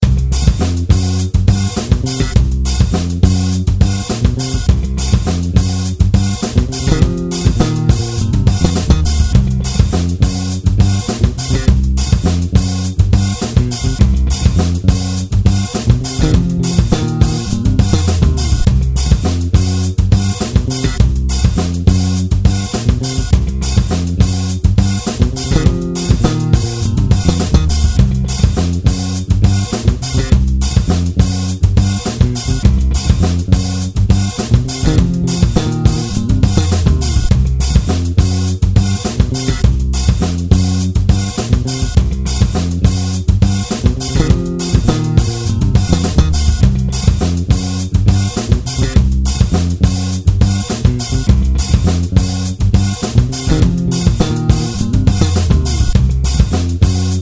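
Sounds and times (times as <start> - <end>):
Fender Squier Vintage Modified Jazz Bass test recording: 0.0 - 57.1.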